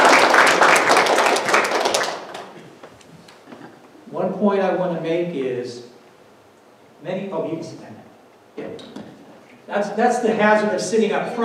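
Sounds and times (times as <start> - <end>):
crowd applauding: 0.0 - 2.6
speech: 4.4 - 5.9, 7.0 - 9.1, 9.7 - 11.4.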